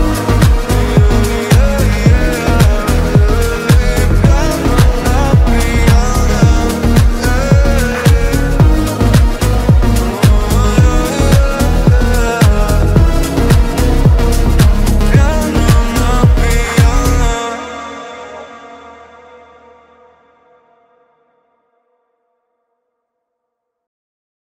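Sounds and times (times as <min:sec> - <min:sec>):
piano: 0:00.0 - 0:19.5.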